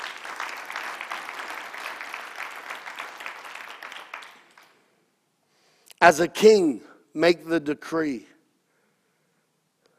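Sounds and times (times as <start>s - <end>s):
audience clapping: 0.0s - 4.9s
speech: 6.0s - 8.3s.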